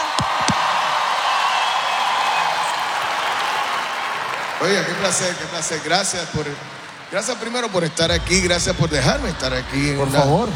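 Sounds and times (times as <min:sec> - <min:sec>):
applause: 0:00.1 - 0:07.5
speech: 0:04.6 - 0:10.5.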